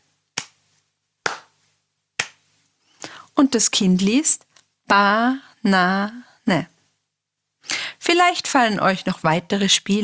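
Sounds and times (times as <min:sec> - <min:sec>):
hand claps marking syllables of a word in a children's word game: 0:00.4 - 0:00.6, 0:01.2 - 0:01.6, 0:02.2 - 0:02.5
speech: 0:03.4 - 0:06.7, 0:07.6 - 0:10.0.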